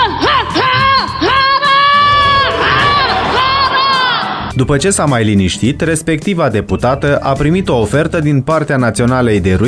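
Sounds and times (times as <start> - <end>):
war cry shouted in parliament: 0.1 - 4.4
speech: 4.6 - 9.6.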